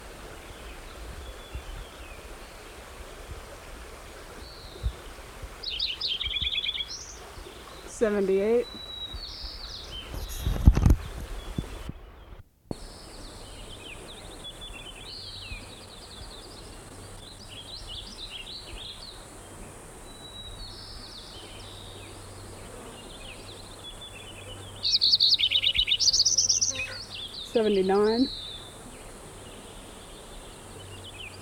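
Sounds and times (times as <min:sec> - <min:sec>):
White-crowned Sparrow singing: 0:05.6 - 0:31.4.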